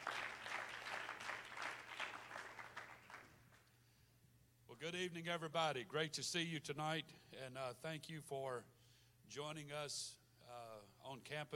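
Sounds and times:
audience clapping hands: 0.0 - 3.7
speech: 4.8 - 11.5.

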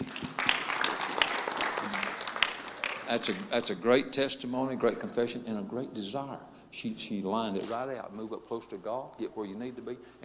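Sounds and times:
audience applause: 0.0 - 3.7
speech: 3.1 - 10.2.

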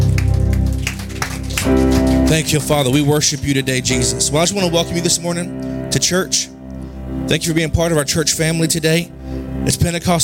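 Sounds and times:
audience clapping: 0.0 - 4.0
sustained low keyboard chords: 0.0 - 10.2
speech: 2.3 - 10.2.

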